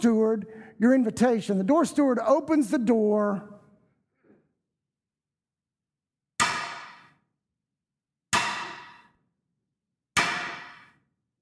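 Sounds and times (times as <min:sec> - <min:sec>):
speech: 0:00.0 - 0:03.5
staff striking the floor: 0:06.4 - 0:07.2, 0:08.4 - 0:09.2, 0:10.2 - 0:11.0.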